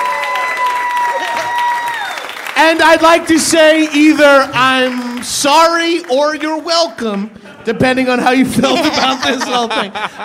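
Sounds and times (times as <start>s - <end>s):
round of applause from a crowd: 0.0s - 6.6s
speech: 2.6s - 10.2s
laughter: 7.4s - 10.2s.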